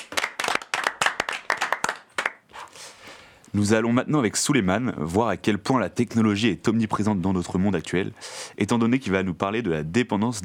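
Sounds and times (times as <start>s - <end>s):
group applause: 0.0s - 2.5s
speech: 3.5s - 10.4s.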